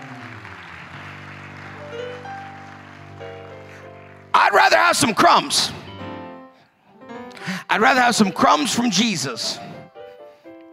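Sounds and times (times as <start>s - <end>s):
audience applause: 0.0s - 5.5s
speech: 4.5s - 5.8s, 7.7s - 9.7s.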